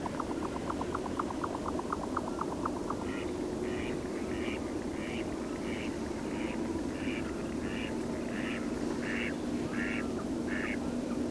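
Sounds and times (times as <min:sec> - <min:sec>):
jack snipe calls: 0:00.0 - 0:10.8
loud low engine-like rumble: 0:00.0 - 0:11.2.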